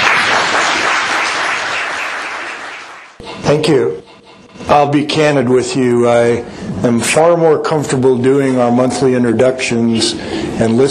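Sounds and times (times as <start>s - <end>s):
audience applause: 0.0s - 3.2s
speech: 3.3s - 4.0s, 4.6s - 10.8s.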